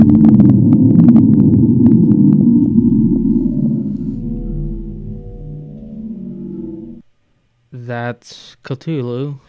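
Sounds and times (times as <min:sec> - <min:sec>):
deep underwater drone sinking in pitch: 0:00.0 - 0:07.1
speech: 0:08.1 - 0:09.4.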